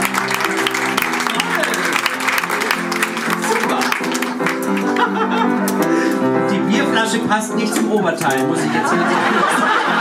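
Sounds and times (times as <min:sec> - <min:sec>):
audience applause: 0:00.0 - 0:05.4
laughter: 0:01.4 - 0:06.2, 0:08.4 - 0:09.9
speech: 0:07.1 - 0:09.9.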